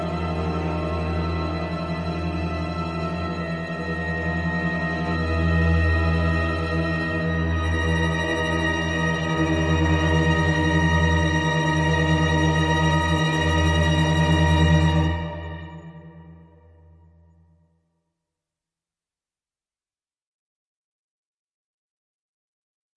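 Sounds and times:
tense cinematic music: 0.0s - 17.2s.

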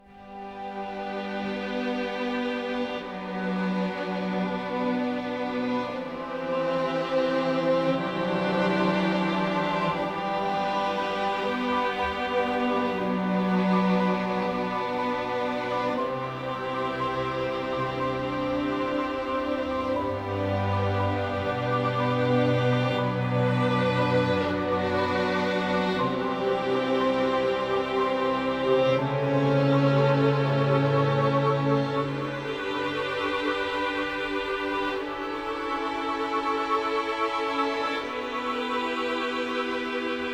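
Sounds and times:
ambient music: 0.0s - 40.3s.

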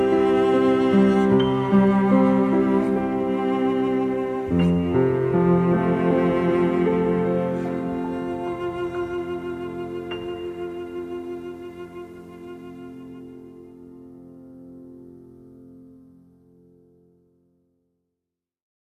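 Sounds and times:
cello: 0.0s - 15.0s
piano: 0.0s - 18.0s.

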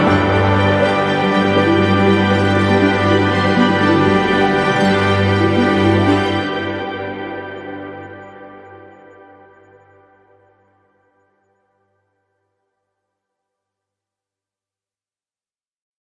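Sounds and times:
ambient music: 0.0s - 11.5s.

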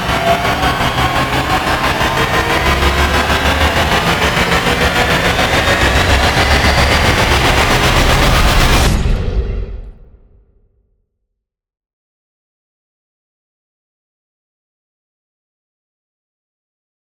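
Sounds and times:
pulsating rise: 0.0s - 9.9s.

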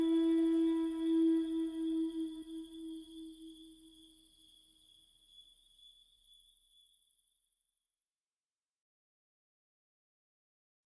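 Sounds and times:
flute: 0.0s - 3.7s
crickets chirping: 0.0s - 7.6s.

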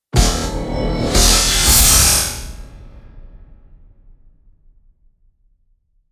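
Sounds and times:
storm stinger: 0.2s - 4.2s.

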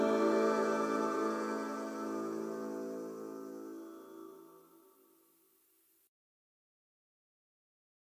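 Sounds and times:
cicadas: 0.0s - 5.1s.

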